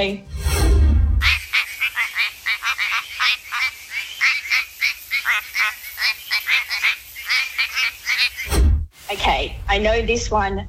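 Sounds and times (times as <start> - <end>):
speech: 0.0 - 0.3, 9.3 - 10.6
quacking frog call: 1.2 - 8.5.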